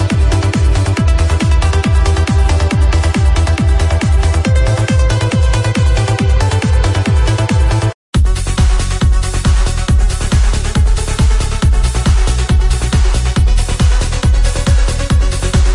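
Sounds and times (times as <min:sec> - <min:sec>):
uplifting trance music: 0:00.0 - 0:15.7.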